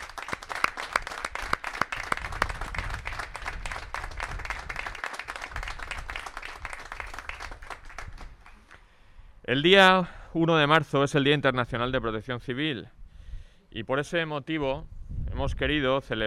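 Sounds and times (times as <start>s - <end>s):
audience applause: 0.0s - 8.6s
speech: 9.5s - 13.0s, 13.7s - 16.2s.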